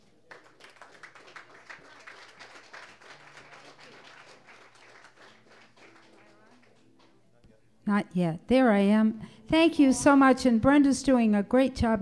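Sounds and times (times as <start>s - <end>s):
audience applause welcoming a guest to the stage: 0.0s - 6.9s
speech: 7.9s - 12.0s.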